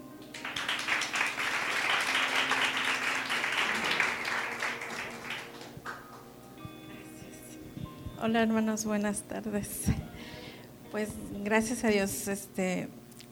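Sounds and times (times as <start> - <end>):
applause: 0.2 - 6.2
speech: 8.2 - 10.0, 10.9 - 13.0.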